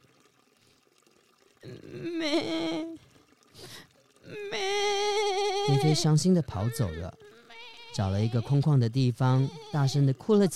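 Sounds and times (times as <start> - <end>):
water being poured onto plant: 0.0 - 10.5
speech: 1.6 - 3.0, 3.6 - 5.0, 5.8 - 7.3, 8.0 - 10.5.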